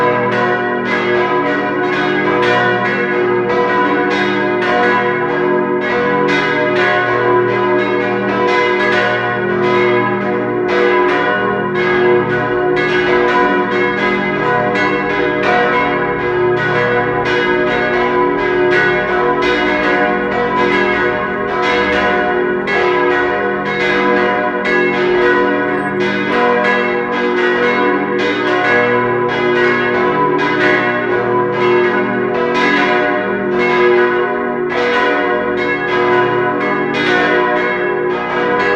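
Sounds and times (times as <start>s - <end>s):
bell concert: 0.0s - 38.7s.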